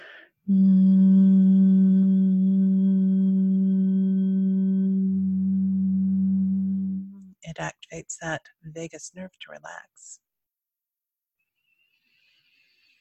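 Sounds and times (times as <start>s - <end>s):
person humming with tongue on roof of mouth: 0.0s - 7.3s
speech: 0.5s - 0.7s, 7.5s - 10.2s.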